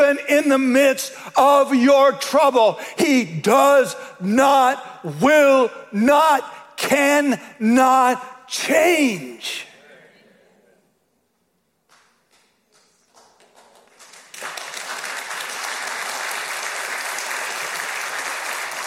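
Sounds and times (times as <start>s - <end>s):
speech: 0.1s - 9.7s
audience applause: 12.8s - 18.8s.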